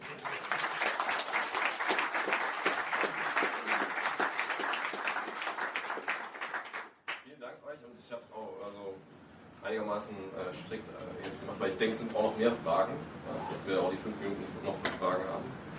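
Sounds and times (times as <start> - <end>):
audience applause: 0.0 - 7.2
speech: 9.9 - 15.7.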